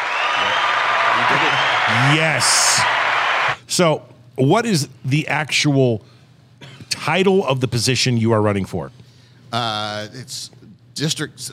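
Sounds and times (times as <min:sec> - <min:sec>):
canned applause sound effect: 0:00.0 - 0:03.6
speech: 0:01.9 - 0:03.1, 0:03.7 - 0:11.5.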